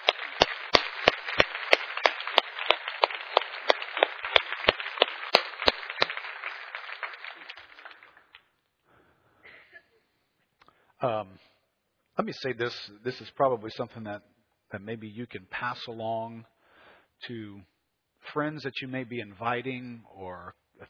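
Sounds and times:
crowd applause: 0.0 - 8.4
speech: 11.0 - 11.5, 12.2 - 16.5, 17.2 - 20.8.

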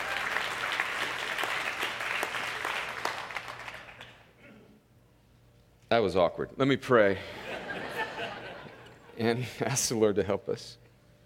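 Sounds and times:
audience applause: 0.0 - 4.2
speech: 5.9 - 7.4, 9.2 - 10.8
laughter: 7.2 - 9.8.

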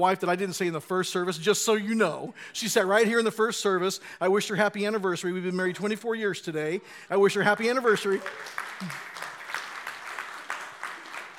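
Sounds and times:
speech: 0.0 - 9.2
audience applause: 7.9 - 11.3.

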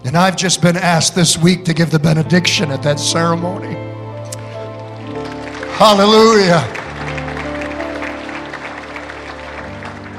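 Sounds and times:
speech: 0.1 - 3.9, 5.8 - 6.8
audience applause: 4.7 - 10.1.

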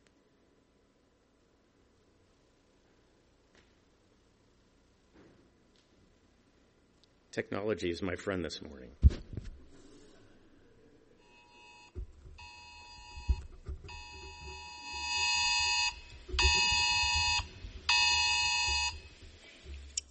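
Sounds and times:
speech: 7.4 - 9.3
phone emergency alert tone: 11.3 - 19.1
low knocks: 11.9 - 20.0.

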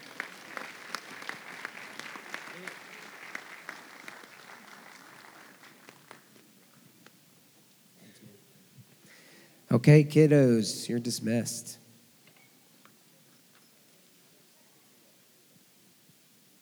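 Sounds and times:
audience applause: 0.0 - 6.6
speech: 9.8 - 11.8.

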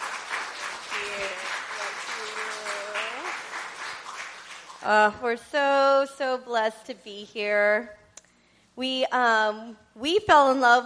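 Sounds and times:
audience applause in a church: 0.0 - 4.8
speech: 4.8 - 8.0, 8.8 - 10.8.

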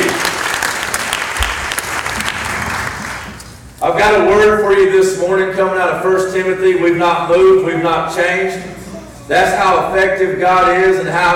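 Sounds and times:
audience applause: 0.0 - 3.4
speech: 3.8 - 11.3.

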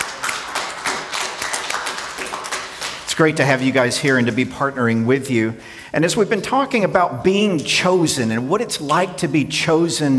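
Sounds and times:
crowd applauding: 0.0 - 4.4
speech: 3.2 - 10.1.

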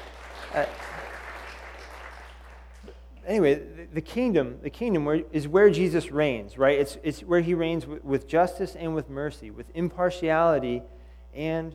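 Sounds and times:
audience clapping: 0.0 - 3.0
speech: 0.5 - 0.9, 3.3 - 11.7.

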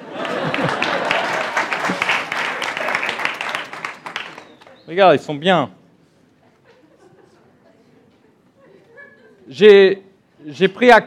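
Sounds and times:
laughter: 0.0 - 4.5, 6.4 - 9.6
audience applauding: 0.0 - 4.8
speech: 4.9 - 5.8, 9.5 - 11.0.

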